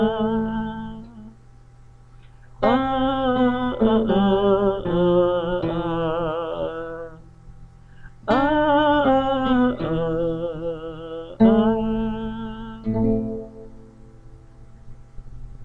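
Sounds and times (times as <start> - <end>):
male vocal part: 0.0 - 1.3, 2.6 - 7.3, 8.0 - 13.0.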